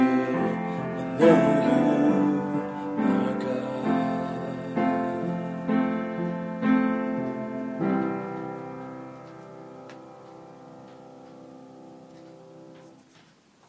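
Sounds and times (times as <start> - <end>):
person singing: 0.0 - 6.4
piano: 0.0 - 13.6.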